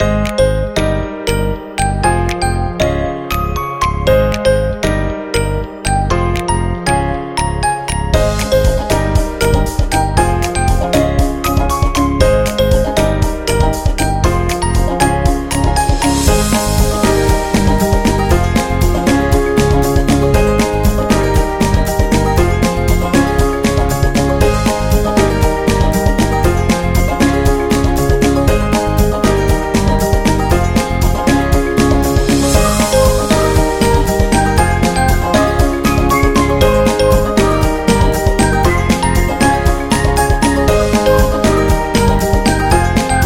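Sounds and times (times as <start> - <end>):
happy and cheerful background music for celebrations: 0.0 - 43.2.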